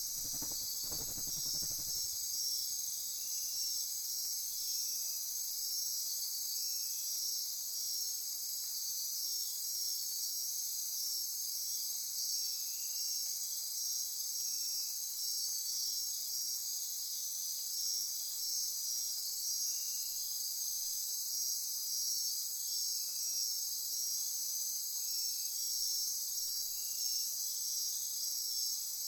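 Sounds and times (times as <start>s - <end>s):
night insect chorus: 0.0s - 29.0s.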